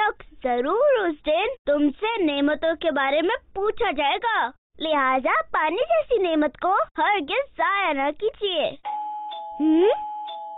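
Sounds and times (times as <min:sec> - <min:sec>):
speech: 0:00.4 - 0:08.9, 0:09.6 - 0:10.1
electronic doorbell chiming: 0:08.8 - 0:10.5.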